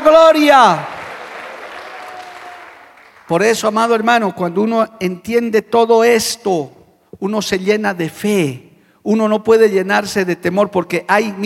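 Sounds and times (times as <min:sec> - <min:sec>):
audience applause: 0:00.0 - 0:03.3
speech: 0:00.1 - 0:00.9, 0:03.3 - 0:11.4.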